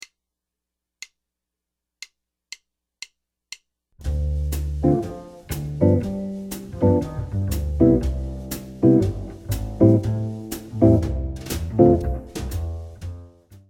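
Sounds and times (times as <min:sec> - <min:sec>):
jazz chord progression: 0:04.0 - 0:13.3.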